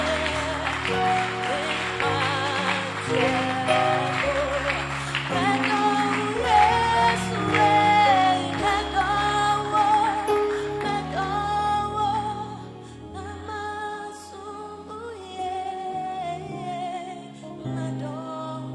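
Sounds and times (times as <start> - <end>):
audience clapping hands: 0.0 - 11.1
loud worship music: 0.0 - 18.7.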